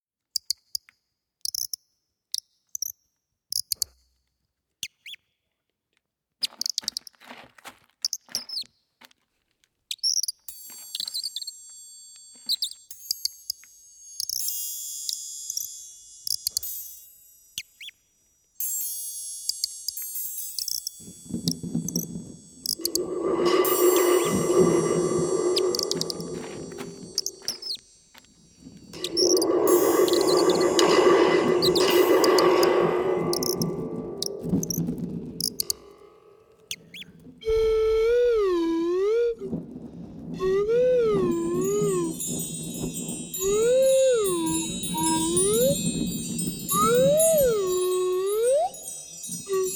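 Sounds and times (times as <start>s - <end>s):
soundscape: 21.2s - 36.8s, 37.5s - 49.7s.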